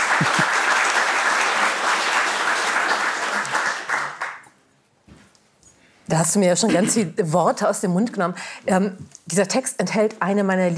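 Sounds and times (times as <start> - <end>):
audience applause: 0.0 - 4.5
speech: 6.1 - 10.7.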